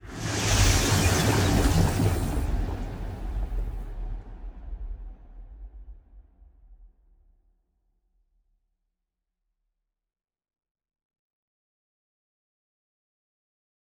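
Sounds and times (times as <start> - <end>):
ship moving: 0.0 - 3.8.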